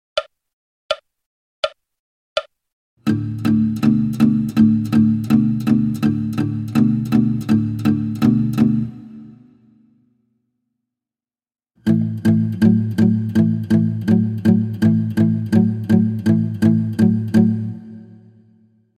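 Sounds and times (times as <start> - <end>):
fingerstyle guitar: 3.0 - 9.6, 11.8 - 18.4.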